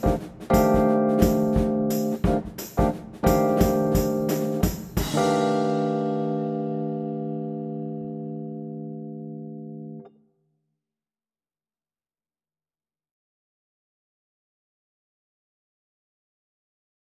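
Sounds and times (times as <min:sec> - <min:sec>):
bass playing a jazz etude: 0:00.0 - 0:10.0.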